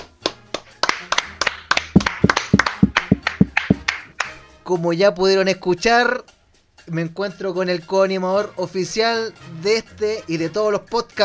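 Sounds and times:
applause: 0:00.0 - 0:04.3
speech: 0:04.7 - 0:06.3, 0:06.9 - 0:11.2.

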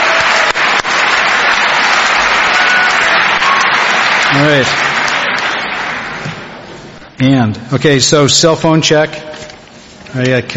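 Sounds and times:
audience applause: 0:00.0 - 0:06.7
speech: 0:04.4 - 0:04.9, 0:07.2 - 0:09.2, 0:10.1 - 0:10.5.

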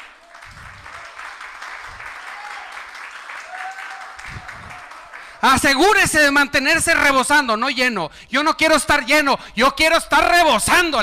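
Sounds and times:
audience applause: 0:00.0 - 0:05.7
scattered voices and cheers: 0:00.2 - 0:06.0
speech: 0:05.4 - 0:11.0.

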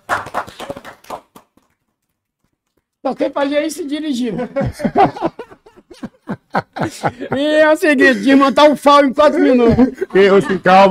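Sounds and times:
hand clapping: 0:00.0 - 0:03.5
speech: 0:03.0 - 0:05.4, 0:06.6 - 0:10.8
laughter: 0:04.2 - 0:10.8.

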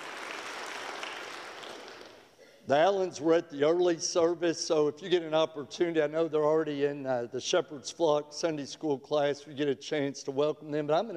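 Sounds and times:
audience applause: 0:00.0 - 0:02.3
speech: 0:02.7 - 0:11.1.

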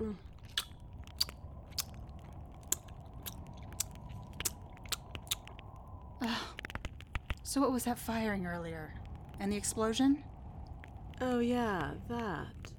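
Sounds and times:
low hum: 0:00.0 - 0:12.7
person chewing crunchy food: 0:00.3 - 0:05.6
speech: 0:07.5 - 0:10.3, 0:11.2 - 0:12.7.

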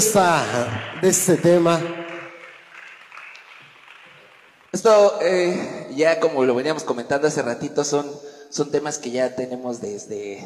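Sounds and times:
speech: 0:00.0 - 0:02.0, 0:04.7 - 0:10.4
applause: 0:00.0 - 0:05.1.

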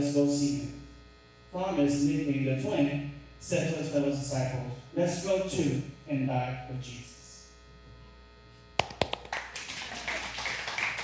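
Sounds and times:
speech: 0:00.0 - 0:00.8, 0:01.5 - 0:07.1
audience applause: 0:08.8 - 0:11.0.

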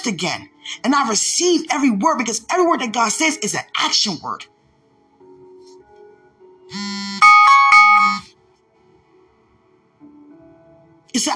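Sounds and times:
speech: 0:00.0 - 0:04.5, 0:11.1 - 0:11.3
electronic alarm tone: 0:06.7 - 0:08.3.

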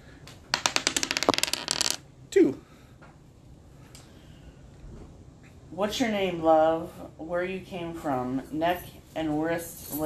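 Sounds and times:
dice rolled during a board game: 0:00.5 - 0:02.0
speech: 0:05.8 - 0:10.0.

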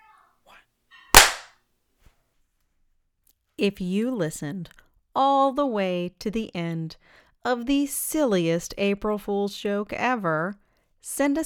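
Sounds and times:
hand clap: 0:01.2 - 0:01.5
speech: 0:03.6 - 0:11.4.

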